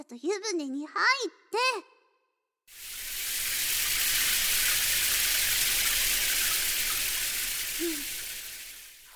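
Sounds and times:
speech: 0:00.0 - 0:02.0
shower water rinsing a body: 0:02.7 - 0:09.1.

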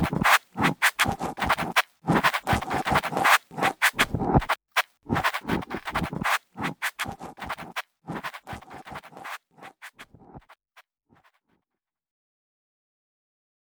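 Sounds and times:
hard sweeping as if several ear picks were inserted, right channel: 0:00.0 - 0:10.0.

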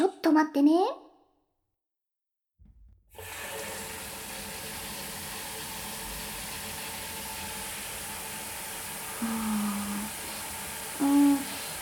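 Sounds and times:
shower water running: 0:03.2 - 0:11.8.

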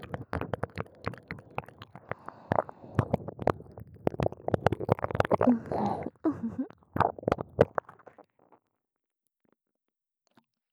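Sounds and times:
ear licking sounds in the right ear: 0:00.1 - 0:07.8.

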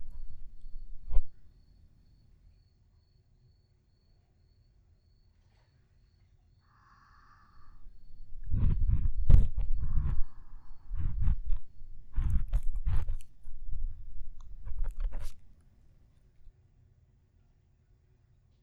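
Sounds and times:
ASMR ear cleaning on a lap pillow: 0:00.0 - 0:01.5, 0:07.6 - 0:15.6.

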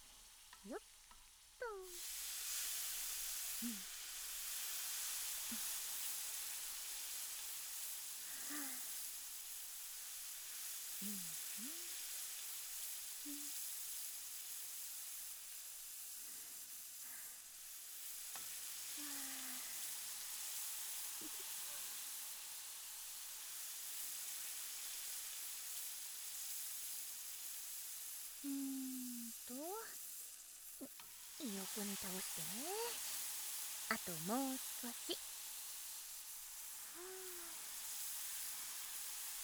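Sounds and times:
turnip sizzling as it grills: 0:00.0 - 0:39.4
speech: 0:00.6 - 0:01.0, 0:01.6 - 0:02.2, 0:03.6 - 0:03.9, 0:31.8 - 0:33.2, 0:33.9 - 0:35.3.

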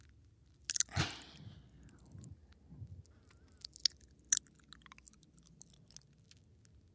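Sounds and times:
licking sounds in the right ear: 0:00.7 - 0:06.1.

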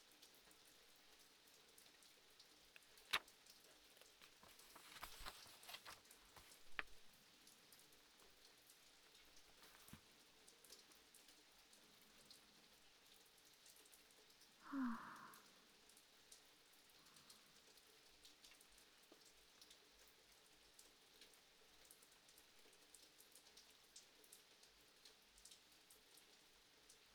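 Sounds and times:
rain: 0:00.0 - 0:27.1
person reading a book: 0:02.8 - 0:07.1, 0:09.4 - 0:10.1.

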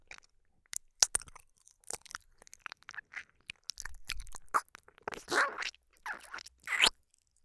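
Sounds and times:
ear licking ASMR: 0:01.0 - 0:06.9.

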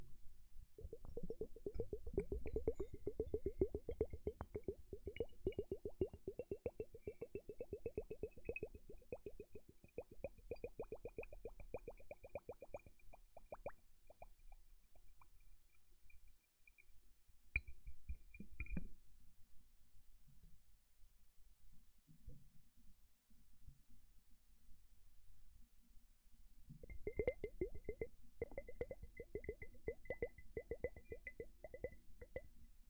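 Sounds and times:
water sounds: 0:00.8 - 0:14.4, 0:26.8 - 0:32.8.

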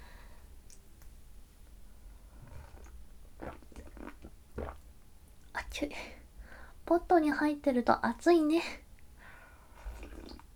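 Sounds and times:
hot black tea being sipped from a cup: 0:02.4 - 0:04.8, 0:09.8 - 0:10.5
speech: 0:05.8 - 0:06.2, 0:06.9 - 0:08.8.

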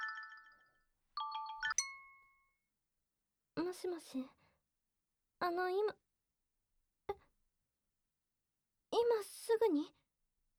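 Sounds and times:
phone ringtone electronic chime: 0:00.0 - 0:02.4
speech: 0:03.7 - 0:04.4, 0:05.4 - 0:06.0, 0:09.6 - 0:10.0.

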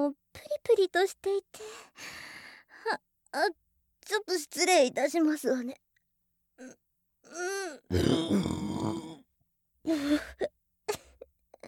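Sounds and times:
speech: 0:00.1 - 0:05.8, 0:06.6 - 0:09.2, 0:09.8 - 0:10.6
burping: 0:07.9 - 0:09.2.

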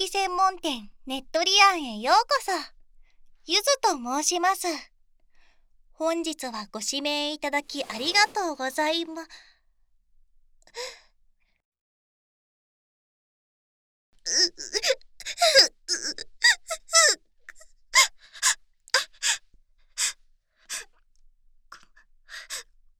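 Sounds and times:
speech: 0:00.0 - 0:02.8, 0:03.4 - 0:04.9, 0:06.0 - 0:09.5, 0:10.7 - 0:11.0, 0:14.3 - 0:17.3, 0:18.0 - 0:18.6
woman crying in gasping sobs: 0:14.3 - 0:17.2.

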